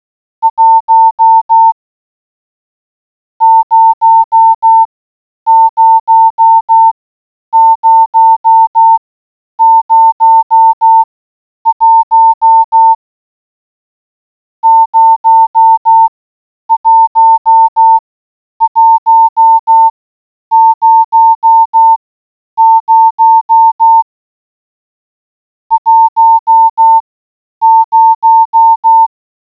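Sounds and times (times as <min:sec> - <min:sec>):
morse code beeps: 0:00.5 - 0:01.8, 0:03.4 - 0:04.9, 0:05.5 - 0:07.0, 0:07.6 - 0:09.0, 0:09.6 - 0:11.1, 0:11.7 - 0:13.0, 0:14.6 - 0:16.1, 0:16.7 - 0:18.0, 0:18.6 - 0:19.9, 0:20.5 - 0:22.0, 0:22.6 - 0:24.0, 0:25.7 - 0:27.0, 0:27.6 - 0:29.1.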